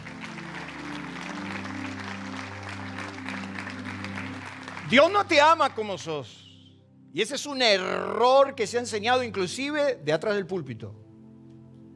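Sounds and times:
audience applauding: 0:00.0 - 0:06.1
sustained keyboard chords: 0:00.0 - 0:11.9
speech: 0:04.9 - 0:06.4, 0:07.1 - 0:11.0.

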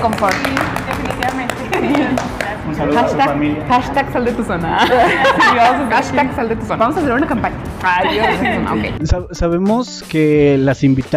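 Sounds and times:
people clapping: 0:00.0 - 0:03.1
speech: 0:00.0 - 0:11.1
laughter: 0:01.6 - 0:02.4, 0:04.6 - 0:06.4, 0:07.9 - 0:09.0.

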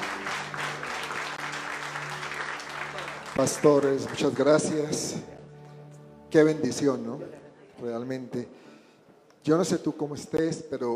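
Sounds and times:
audience applauding: 0:00.0 - 0:05.0
speech: 0:03.4 - 0:05.4, 0:06.3 - 0:08.7, 0:09.4 - 0:10.9.

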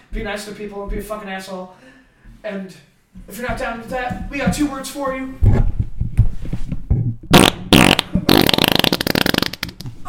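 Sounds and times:
speech: 0:00.1 - 0:05.7
loud buzzy farts: 0:07.3 - 0:09.9.

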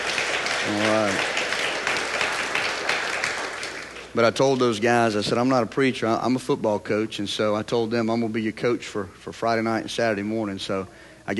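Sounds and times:
crowd hand clapping: 0:00.0 - 0:04.2
speech: 0:00.7 - 0:01.4, 0:04.2 - 0:11.3.

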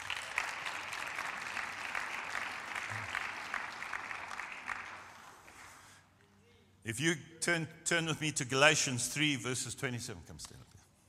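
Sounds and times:
audience applause: 0:00.0 - 0:05.9
speech: 0:06.9 - 0:10.8.

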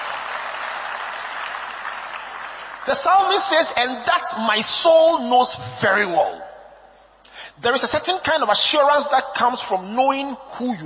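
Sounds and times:
audience clapping: 0:00.0 - 0:03.4
speech: 0:02.8 - 0:06.4, 0:07.6 - 0:10.8.

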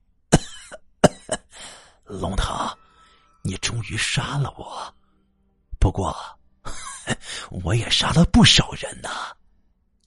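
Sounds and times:
person coughing: 0:00.3 - 0:01.6
speech: 0:02.1 - 0:02.8, 0:03.8 - 0:05.0, 0:05.8 - 0:09.4.

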